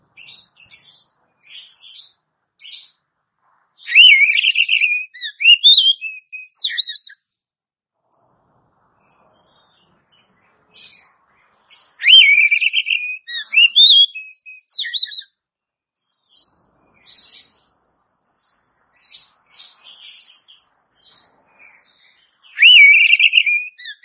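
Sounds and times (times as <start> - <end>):
Oriental magpie-robin whistled phrase: 3.9 - 7.2, 12.0 - 15.3, 22.5 - 24.0.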